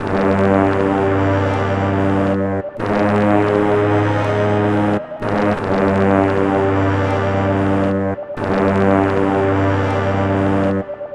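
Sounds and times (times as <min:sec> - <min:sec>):
hip-hop melody: 0:00.0 - 0:11.1.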